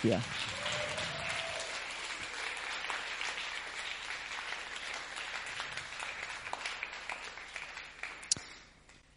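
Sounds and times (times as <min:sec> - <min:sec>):
audience applause: 0:00.0 - 0:08.6.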